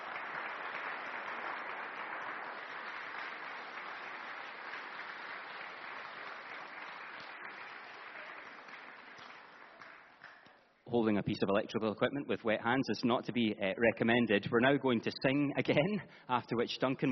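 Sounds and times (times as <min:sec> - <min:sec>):
round of applause: 0:00.0 - 0:10.6
speech: 0:10.9 - 0:17.1.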